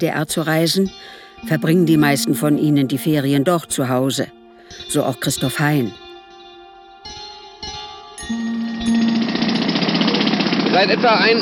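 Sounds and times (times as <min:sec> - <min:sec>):
speech: 0:00.0 - 0:06.0, 0:10.8 - 0:11.4
jackhammers drilling a trench in the Ebertstraße: 0:08.2 - 0:11.4.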